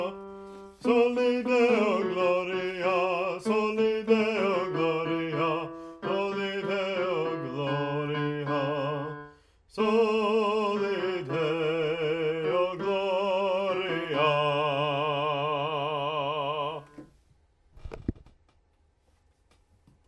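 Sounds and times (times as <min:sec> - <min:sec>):
baritone singing: 0:00.0 - 0:17.1
choir singing: 0:00.8 - 0:09.0, 0:09.8 - 0:16.9.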